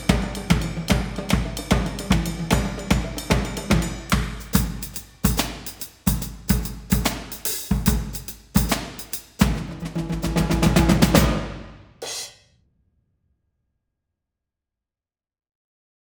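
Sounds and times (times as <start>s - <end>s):
drum solo dance: 0.0s - 12.4s.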